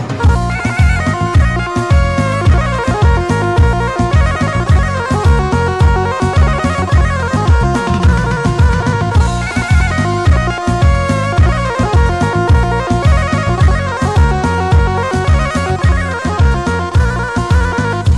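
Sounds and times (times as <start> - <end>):
Balkan turbo folk music: 0.0 - 18.1.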